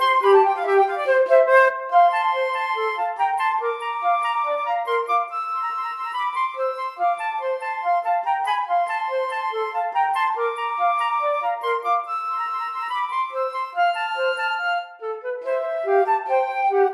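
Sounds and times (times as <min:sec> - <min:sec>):
flute duet: 0:00.0 - 0:16.9.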